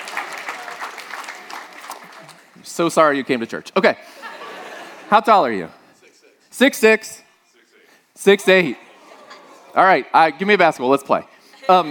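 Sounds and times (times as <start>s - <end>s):
church audience clapping: 0.0s - 2.7s
speech: 2.8s - 4.2s, 5.1s - 5.8s, 6.6s - 7.2s, 8.2s - 8.8s, 9.8s - 11.8s
laughter: 4.0s - 5.2s, 8.5s - 10.0s, 11.4s - 11.8s.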